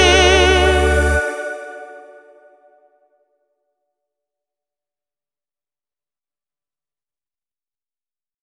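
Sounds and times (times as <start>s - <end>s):
person singing: 0.0s - 2.4s.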